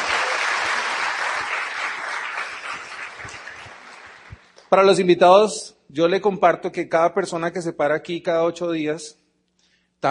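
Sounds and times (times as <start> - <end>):
audience applause: 0.0 - 4.5
speech: 4.7 - 9.2.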